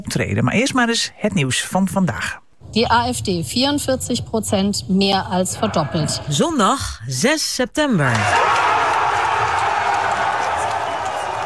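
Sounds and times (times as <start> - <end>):
speech: 0.0 - 8.6
crowd cheering in the Alternative für Deutschland camp at election result: 8.1 - 11.4.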